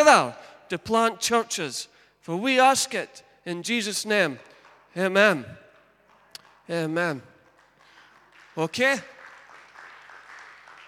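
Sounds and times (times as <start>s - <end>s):
speech: 0.0s - 5.6s, 6.7s - 7.3s, 8.6s - 9.2s
audience clapping: 4.4s - 10.8s.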